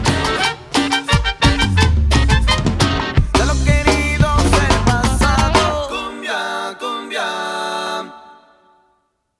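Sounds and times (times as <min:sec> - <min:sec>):
cumbia music: 0:00.0 - 0:08.4
male vocalists singing cumbia: 0:03.2 - 0:08.8.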